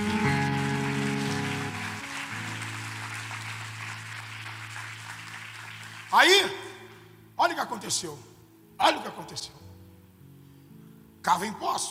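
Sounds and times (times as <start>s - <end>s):
audience applauding: 0.0s - 6.9s
speech: 6.1s - 6.6s, 7.4s - 9.6s, 11.2s - 11.8s.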